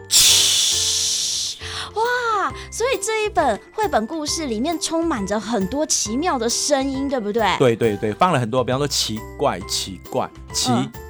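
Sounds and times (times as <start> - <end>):
voice imitating a train hissing to a stop: 0.0 - 1.7
speech: 2.0 - 11.0.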